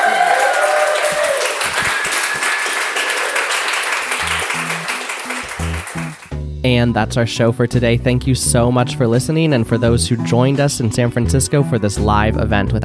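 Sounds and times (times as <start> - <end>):
audience clapping at a live event in San Francisco: 0.0 - 6.3
speech: 6.8 - 12.8.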